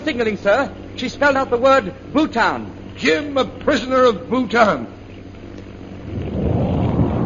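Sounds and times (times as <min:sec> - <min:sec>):
speech: 0:00.0 - 0:05.0
bomb explosion: 0:06.1 - 0:07.2.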